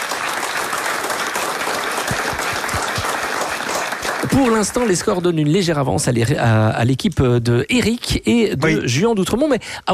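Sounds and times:
live audience applause in Rochehaut: 0:00.0 - 0:05.1
speech: 0:04.4 - 0:09.9.

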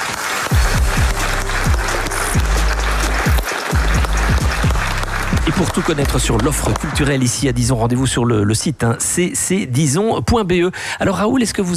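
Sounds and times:
crowd applauding: 0:00.0 - 0:07.9
speech: 0:05.6 - 0:11.7.

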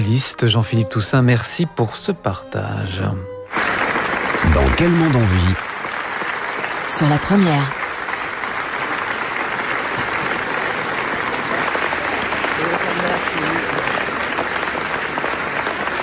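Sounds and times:
speech: 0:00.0 - 0:03.8, 0:04.4 - 0:05.7, 0:06.9 - 0:07.8
large crowd applauding at film festival screening: 0:03.5 - 0:16.0.

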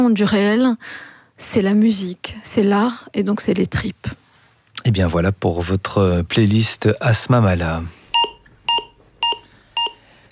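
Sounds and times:
speech: 0:00.0 - 0:04.2, 0:04.8 - 0:08.0
electrocardiogram beeps in a hospital: 0:08.1 - 0:10.2.

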